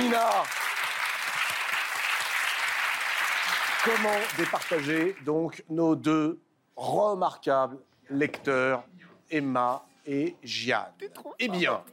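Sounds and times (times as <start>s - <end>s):
audience applause: 0.0s - 5.2s
speech: 0.1s - 0.7s, 3.8s - 11.9s.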